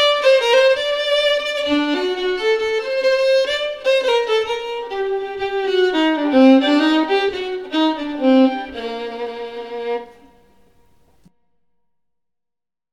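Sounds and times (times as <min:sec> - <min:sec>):
schottische dance music: 0:00.0 - 0:10.2.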